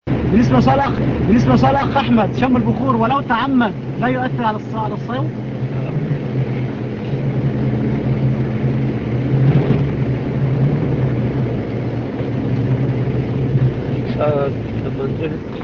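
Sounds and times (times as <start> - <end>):
steady low car engine drone: 0.0 - 15.6
speech: 0.3 - 5.9, 14.2 - 15.6.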